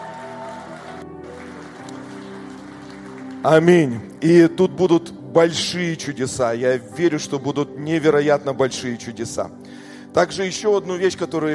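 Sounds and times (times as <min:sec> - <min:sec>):
crowd applauding: 0:00.0 - 0:04.2
speech: 0:03.4 - 0:11.5.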